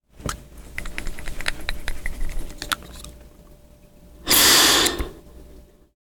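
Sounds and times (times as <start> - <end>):
asthma inhaler being used: 4.2 - 5.2.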